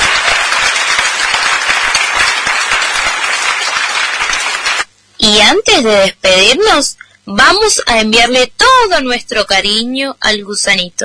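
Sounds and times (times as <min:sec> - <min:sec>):
applause: 0:00.0 - 0:04.9
speech: 0:05.3 - 0:11.0.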